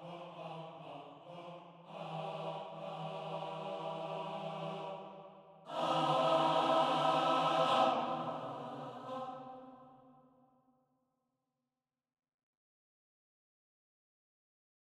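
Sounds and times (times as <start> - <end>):
choir singing: 0.0 - 10.3.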